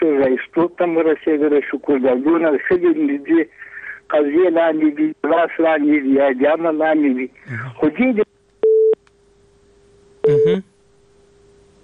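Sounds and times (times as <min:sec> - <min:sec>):
faint hum: 0:00.0 - 0:11.8
speech: 0:00.2 - 0:08.3, 0:10.3 - 0:10.7
telephone busy tone after a dropped call: 0:08.6 - 0:09.0, 0:10.2 - 0:10.6
short burst of voice: 0:10.3 - 0:10.7.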